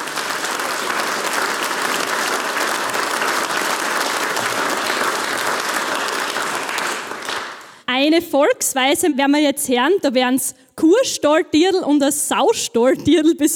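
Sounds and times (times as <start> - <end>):
audience applause: 0.0 - 7.8
speech: 8.2 - 13.5.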